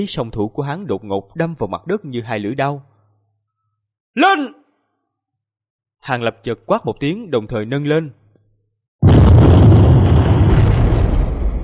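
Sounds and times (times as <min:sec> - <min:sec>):
speech: 0:00.0 - 0:02.9, 0:04.2 - 0:04.6, 0:06.0 - 0:08.2
explosion echoing through a valley: 0:09.0 - 0:11.6.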